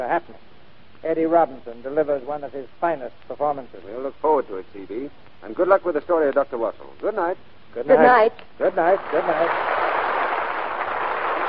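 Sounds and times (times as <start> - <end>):
speech: 0.0 - 9.8
studio audience applause: 8.8 - 11.4.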